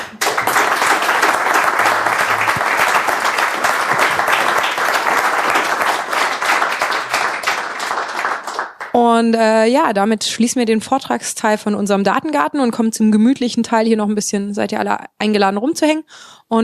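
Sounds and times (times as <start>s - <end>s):
audience applause after a talk: 0.0s - 9.0s
speech: 9.2s - 16.6s.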